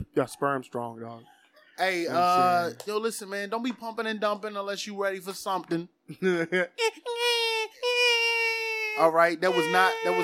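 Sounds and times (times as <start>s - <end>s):
speech: 0.2s - 7.3s, 9.0s - 10.2s
voice imitating a baby crying: 2.1s - 2.8s, 6.8s - 10.2s.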